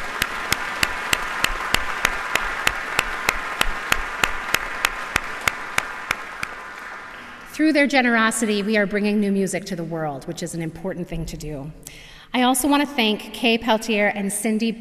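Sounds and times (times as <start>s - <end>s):
audience applause: 0.0s - 7.5s
speech: 7.6s - 14.8s.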